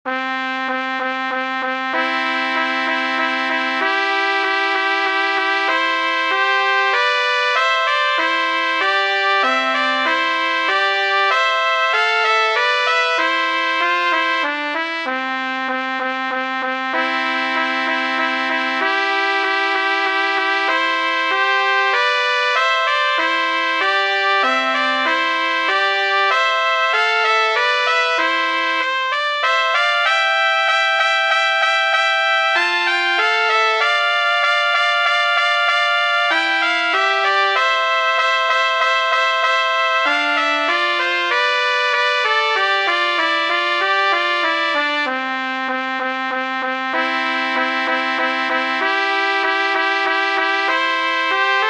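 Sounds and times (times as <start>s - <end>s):
fanfare minuet: 0.1s - 51.6s.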